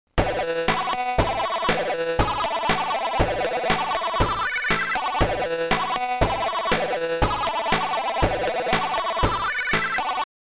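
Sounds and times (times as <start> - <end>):
chiptune music: 0.2 - 10.3.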